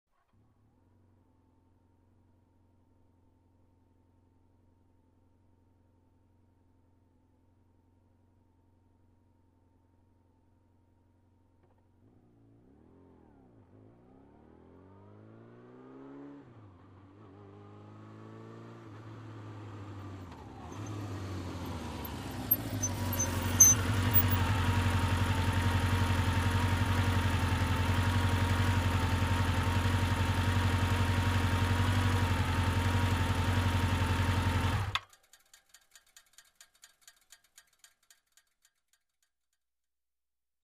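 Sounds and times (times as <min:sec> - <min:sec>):
motorcycle approaching and turning off: 0:12.0 - 0:35.0.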